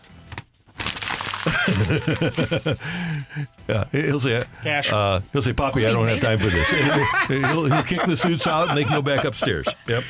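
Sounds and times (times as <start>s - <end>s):
sheet of paper crinkling and rustling: 0.0s - 2.8s
laughter: 1.4s - 3.9s, 5.9s - 10.0s
speech: 1.7s - 10.0s.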